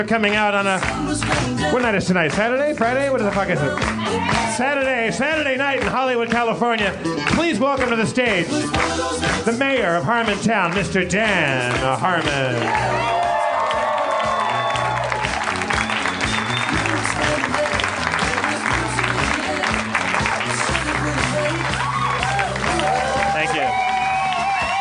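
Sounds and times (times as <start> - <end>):
speech: 0.0 - 13.3
crowd applause: 11.6 - 24.7
whoops and shouts: 12.7 - 15.2, 21.7 - 24.7.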